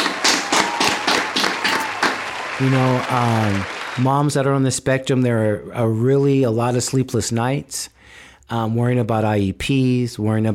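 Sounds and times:
rhythmic clapping: 0.0s - 4.5s
speech: 2.6s - 10.5s.

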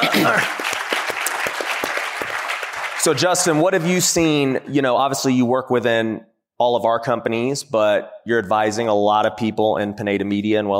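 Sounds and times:
audience applause: 0.0s - 4.1s
speech: 3.0s - 10.7s.

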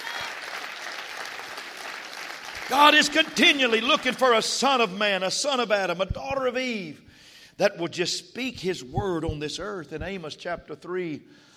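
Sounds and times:
audience clapping hands: 0.0s - 4.5s
speech: 2.7s - 7.0s, 7.6s - 11.5s.

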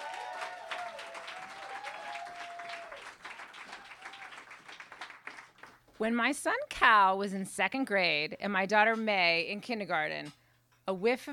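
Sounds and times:
audience at the M Bar in Hollywood applauding a storyteller: 0.0s - 5.9s
speech: 6.0s - 11.3s.

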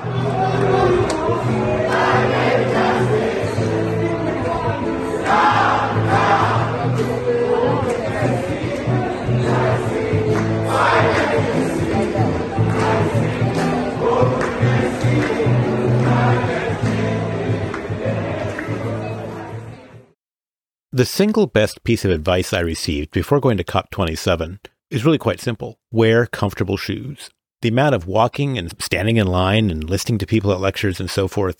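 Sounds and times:
youth crowd chanting and cheering at the Children and Youth Pavilion: 0.0s - 20.1s
speech: 21.0s - 31.5s.

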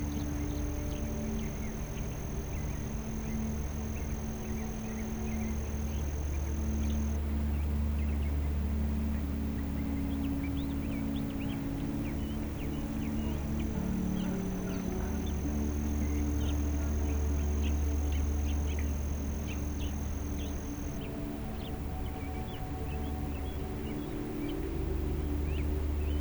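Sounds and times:
thin high whine: 0.0s - 7.5s, 11.3s - 26.1s
birds chirping: 0.0s - 26.1s
constant low hum: 0.0s - 26.1s
steady white noise hiss: 0.0s - 26.1s.

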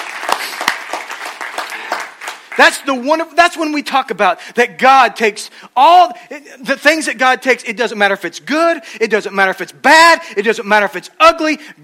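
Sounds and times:
audience clapping: 0.0s - 3.0s
speech: 2.6s - 11.8s.

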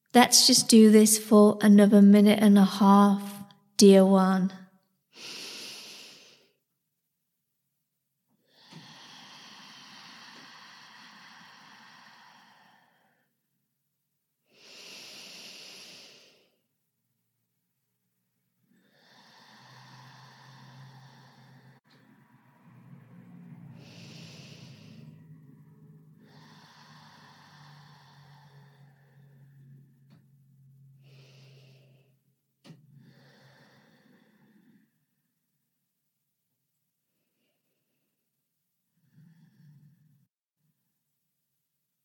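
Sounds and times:
speech: 0.1s - 4.6s
slow meditative breathing: 5.1s - 6.8s, 8.3s - 13.6s, 14.4s - 16.8s, 18.6s - 35.5s, 37.0s - 40.3s.

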